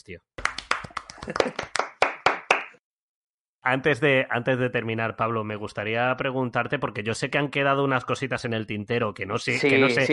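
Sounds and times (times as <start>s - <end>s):
speech: 0.0s - 0.4s, 1.2s - 1.7s, 3.6s - 10.1s
applause sound effect: 0.4s - 2.8s.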